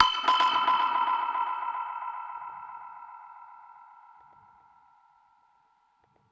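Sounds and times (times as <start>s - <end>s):
dub percussion hit: 0.0s - 2.9s.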